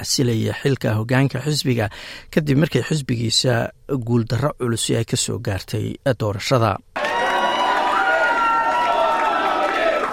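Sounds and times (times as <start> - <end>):
speech: 0.0 - 7.0
cheering: 7.0 - 10.1
crowd of a premier's supporters chanting a slogan at an election victory celebration: 7.0 - 10.1.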